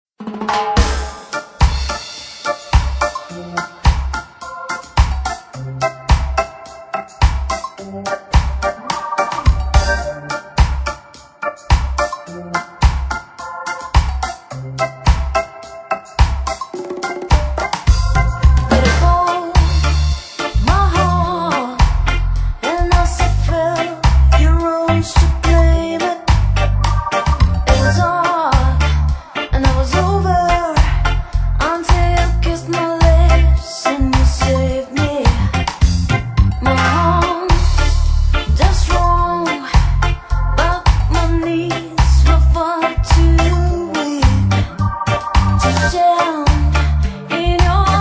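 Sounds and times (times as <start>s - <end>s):
reggae cover song: 0.2s - 47.9s.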